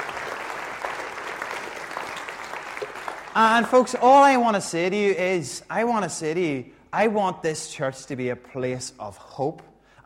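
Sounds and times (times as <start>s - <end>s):
applause: 0.0s - 4.4s
speech: 3.4s - 10.0s.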